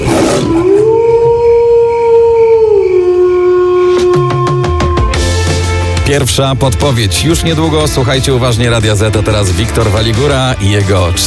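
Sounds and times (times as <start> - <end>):
wolf howling: 0.0 - 5.4
speech: 6.2 - 11.2.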